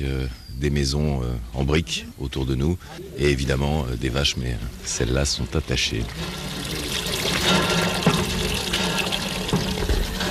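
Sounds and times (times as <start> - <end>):
speech: 0.0 - 7.7
water being pumped into a basin for cows: 4.6 - 10.2.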